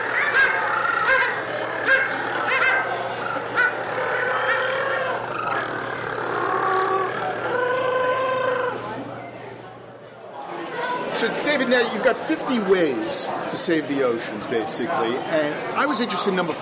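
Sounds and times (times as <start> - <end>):
penguin colony calling: 0.0 - 8.8
speech: 11.2 - 16.6.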